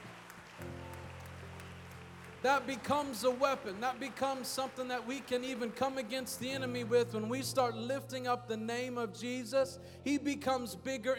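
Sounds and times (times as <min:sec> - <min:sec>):
audience clapping: 0:00.0 - 0:07.6
speech: 0:02.4 - 0:11.1.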